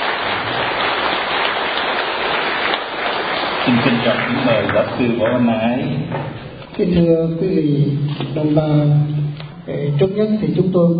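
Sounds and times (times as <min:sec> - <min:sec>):
crowd applause: 0:00.0 - 0:05.5
speech: 0:03.7 - 0:10.9.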